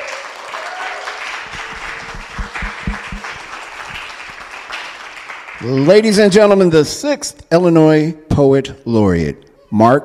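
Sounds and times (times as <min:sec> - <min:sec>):
crowd applauding: 0:00.0 - 0:06.4
speech: 0:05.6 - 0:10.0.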